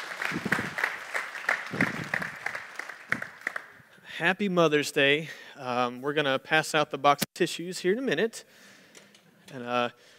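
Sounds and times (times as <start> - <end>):
audience clapping: 0.0 - 3.9
speech: 0.3 - 0.6, 4.2 - 8.7, 9.5 - 10.1.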